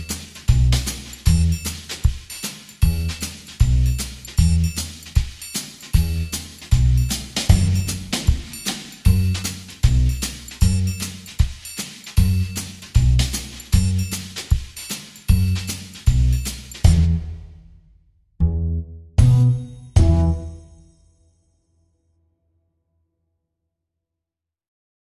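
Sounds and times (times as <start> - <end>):
bass: 0.0 - 2.1, 2.8 - 5.1, 6.0 - 11.4, 12.1 - 14.5, 15.3 - 17.8, 18.4 - 20.9
percussion: 0.0 - 18.0, 19.2 - 21.5.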